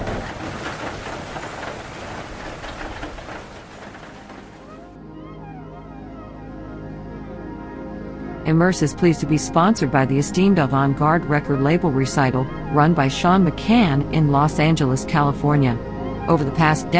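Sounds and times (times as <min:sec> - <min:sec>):
water pouring down everywhere: 0:00.0 - 0:05.0
speech: 0:08.4 - 0:16.9.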